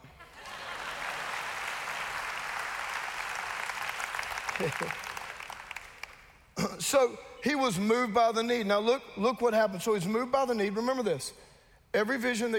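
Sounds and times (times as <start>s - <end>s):
laughter: 0.0s - 1.3s, 4.6s - 5.1s
audience applause: 0.0s - 6.3s
speech: 4.6s - 5.0s, 6.6s - 12.5s.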